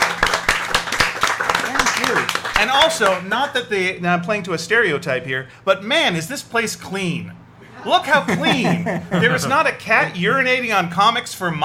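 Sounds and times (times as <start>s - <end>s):
audience applause: 0.0s - 3.2s
laughter: 1.4s - 2.4s, 7.6s - 10.6s
speech: 2.6s - 11.6s.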